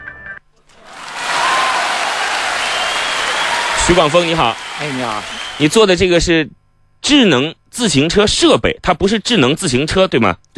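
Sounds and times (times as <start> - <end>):
audience applause: 0.7 - 5.9
speech: 3.9 - 10.5.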